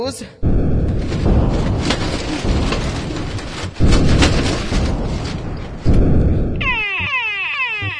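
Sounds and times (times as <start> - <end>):
warbling alarm: 0.4 - 1.0, 6.0 - 7.9
asteroids hitting and blowing up a spaceship: 0.4 - 7.1.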